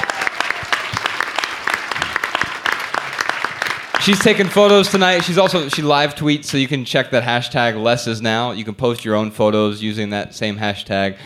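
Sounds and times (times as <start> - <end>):
audience applause: 0.0 - 6.1
sharp individual claps: 0.0 - 6.1
speech: 4.0 - 11.2.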